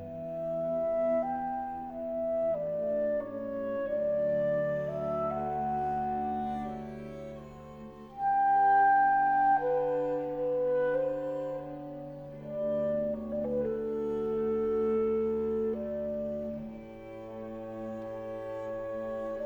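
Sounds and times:
clarinet playing a larghetto: 0:00.0 - 0:19.4.

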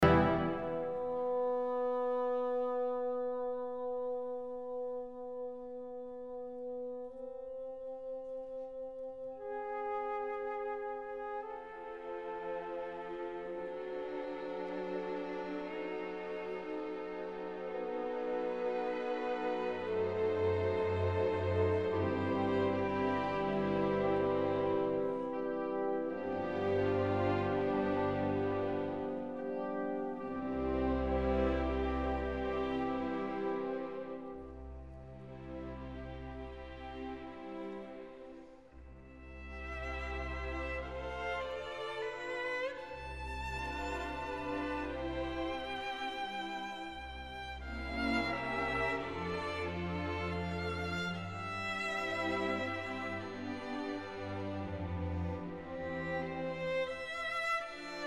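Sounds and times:
violin concerto: 0:00.0 - 0:58.0.

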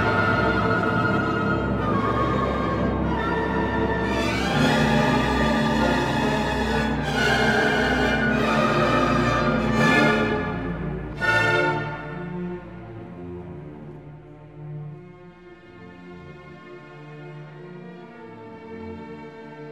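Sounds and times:
piano concerto in D minor: 0:00.0 - 0:13.6.

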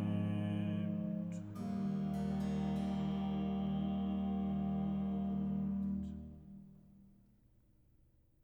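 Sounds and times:
person singing recitative: 0:00.0 - 0:06.2.

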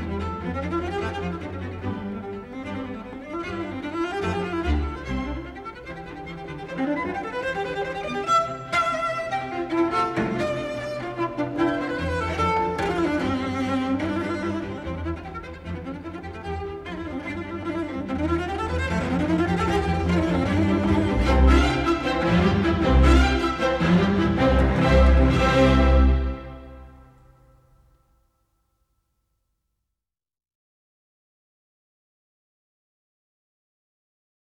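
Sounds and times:
cello concerto in C: 0:00.0 - 0:27.4.

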